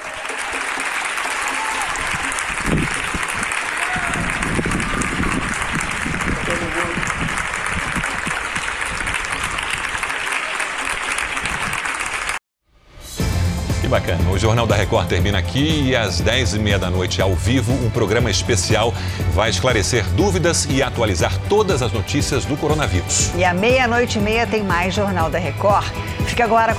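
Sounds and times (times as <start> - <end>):
audience applauding a performance: 0.0 - 12.4
speech: 14.1 - 26.7.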